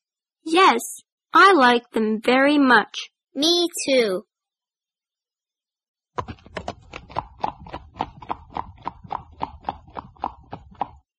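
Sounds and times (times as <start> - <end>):
speech: 0.4 - 4.3, 6.2 - 6.4
horse hooves clip-clopping at a trot: 6.2 - 11.0.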